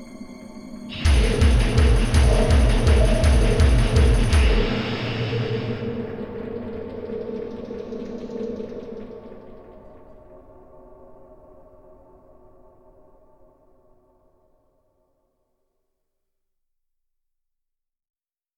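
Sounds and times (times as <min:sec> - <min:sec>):
instrumental music: 0:00.0 - 0:06.4.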